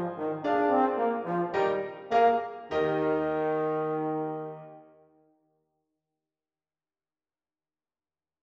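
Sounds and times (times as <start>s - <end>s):
euphonium playing: 0.0s - 4.7s.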